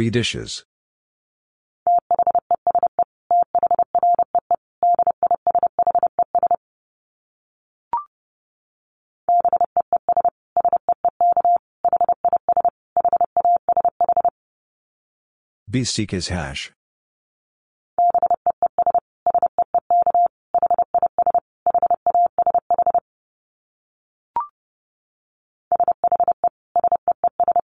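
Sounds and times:
speech: 0.0 - 0.7, 15.7 - 16.8
Morse code dits at 30 wpm: 1.9 - 6.6, 9.4 - 14.3, 18.0 - 23.0, 25.7 - 27.6.

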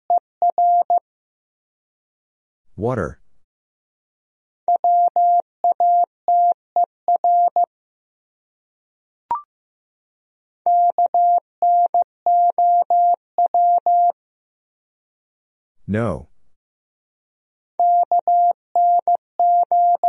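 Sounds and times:
Morse code beeps at 15 words per minute: 0.5 - 1.0, 4.8 - 7.7, 10.7 - 14.2, 17.8 - 20.0
speech: 2.8 - 3.2, 15.9 - 16.3.

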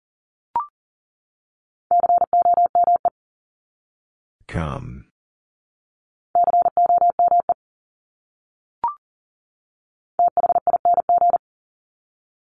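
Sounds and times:
Morse code tones at 40 wpm: 1.9 - 3.1, 6.4 - 7.6, 10.2 - 11.4
speech: 4.5 - 5.1.

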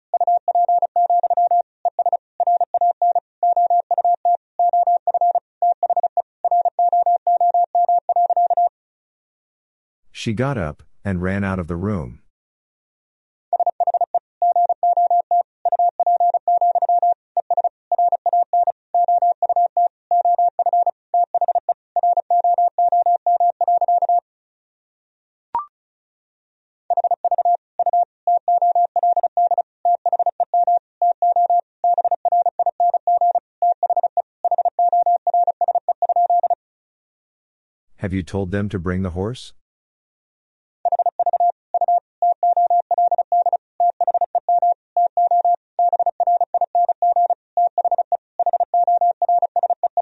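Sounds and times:
Morse code tones at 35 words per minute: 0.1 - 8.7, 13.6 - 24.2, 26.9 - 36.6, 40.9 - 49.9
speech: 10.2 - 12.2, 38.1 - 39.6.

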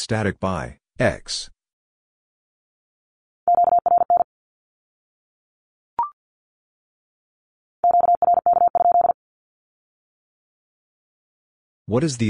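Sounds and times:
speech: 0.0 - 1.6, 11.9 - 12.2
Morse code Q-code tones at 50 wpm: 3.5 - 4.2, 7.8 - 9.2.

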